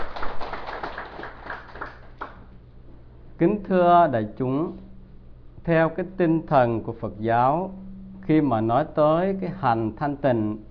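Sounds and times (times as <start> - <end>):
audience applause at a Buddhist dharma talk: 0.0 - 2.4
speech: 3.4 - 4.8, 5.6 - 10.6.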